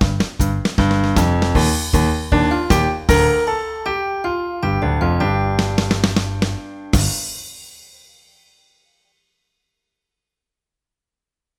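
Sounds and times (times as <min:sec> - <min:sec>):
keyboard music: 0:00.0 - 0:07.2.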